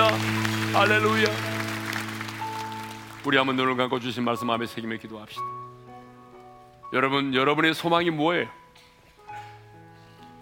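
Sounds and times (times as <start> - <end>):
sustained keyboard or organ chord: 0.0 - 3.8
audience applause: 0.0 - 4.0
speech: 0.8 - 1.5, 3.2 - 5.6, 6.9 - 8.6.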